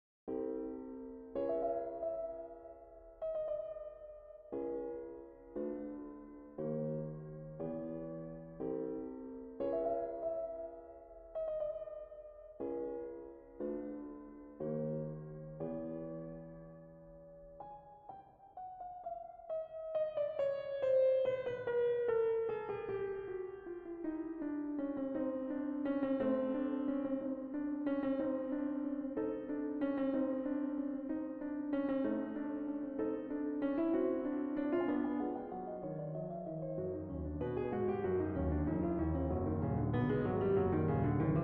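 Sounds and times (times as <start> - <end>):
quarter-tone piano: 0.3 - 41.4.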